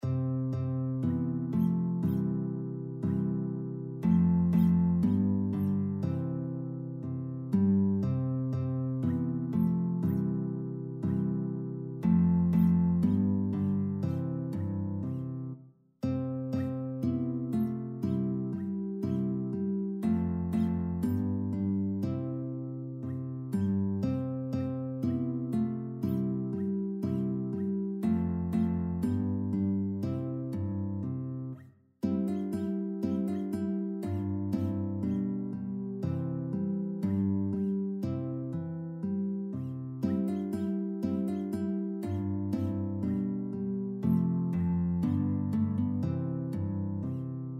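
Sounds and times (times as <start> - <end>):
light English dance on three guitars: 0.0 - 47.5.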